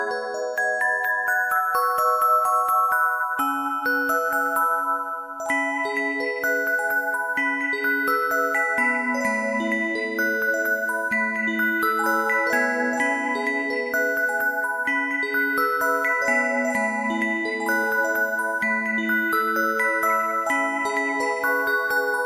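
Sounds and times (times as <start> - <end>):
music box: 0.0 - 22.2.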